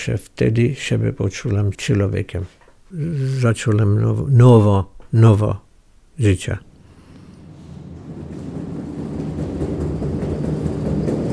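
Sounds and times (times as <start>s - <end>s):
speech: 0.0s - 5.6s, 6.2s - 6.7s
thunderstorm beginning, rumbling thunder: 6.7s - 11.3s.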